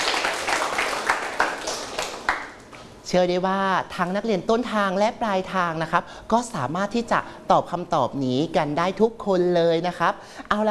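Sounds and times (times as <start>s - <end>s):
classroom of students clapping for a classmate: 0.0s - 2.8s
speech: 3.1s - 10.6s.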